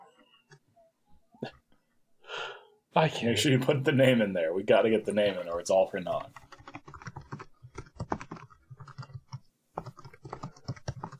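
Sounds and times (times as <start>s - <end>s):
speech: 1.4s - 1.6s, 3.0s - 6.4s
typing on a computer keyboard during formatting work: 6.2s - 11.1s.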